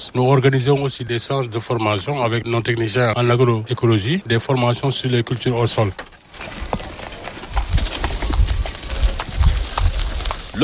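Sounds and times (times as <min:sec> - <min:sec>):
speech: 0:00.1 - 0:06.1
rolling rumble of a rubbish cart: 0:05.6 - 0:10.6
clip-clop hoofbeats of a rubbish collection cart: 0:05.8 - 0:10.6.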